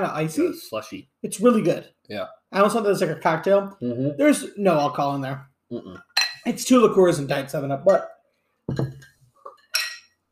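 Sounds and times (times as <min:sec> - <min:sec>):
speech: 0:00.0 - 0:08.1, 0:08.7 - 0:09.1
drinking glasses clinking: 0:06.1 - 0:06.5, 0:08.7 - 0:10.1.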